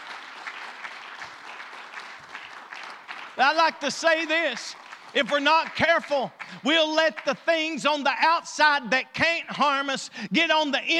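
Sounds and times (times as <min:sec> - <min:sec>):
audience hand clapping: 0:00.0 - 0:07.9
speech: 0:03.4 - 0:10.9.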